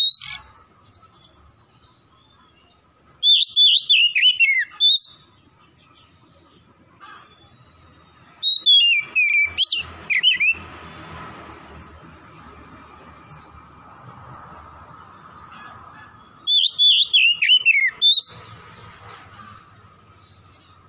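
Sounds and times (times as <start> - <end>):
Oriental magpie-robin singing: 0.0 - 10.7, 15.4 - 18.9.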